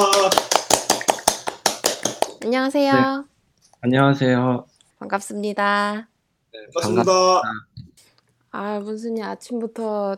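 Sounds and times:
speech: 0:00.0 - 0:00.4, 0:02.5 - 0:07.9, 0:08.5 - 0:10.1
clapping applause: 0:00.0 - 0:02.4.

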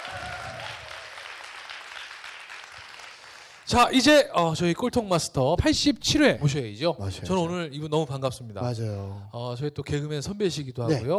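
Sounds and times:
audience applause: 0:00.0 - 0:03.7
speech: 0:03.7 - 0:11.1.

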